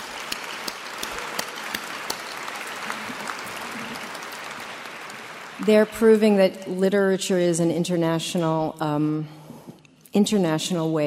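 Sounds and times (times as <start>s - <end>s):
audience applause: 0.0s - 6.0s
speech: 5.6s - 9.4s, 10.1s - 11.0s.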